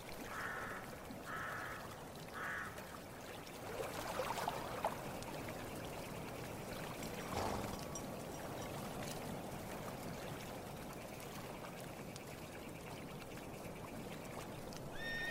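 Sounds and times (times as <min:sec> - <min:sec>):
splashes: 0:00.0 - 0:15.0
lake water lapping: 0:00.0 - 0:15.3
birds cawing: 0:00.3 - 0:02.8, 0:14.9 - 0:15.3.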